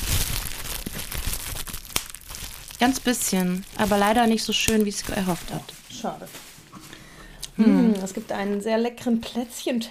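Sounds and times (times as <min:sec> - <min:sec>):
plastic wrapping foil crinkling: 0:00.0 - 0:06.7, 0:07.9 - 0:08.8
speech: 0:02.8 - 0:06.5, 0:07.6 - 0:09.8.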